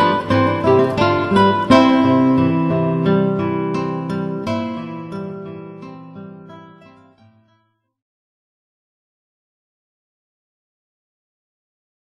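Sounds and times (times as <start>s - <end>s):
three guitars: 0.0s - 7.8s.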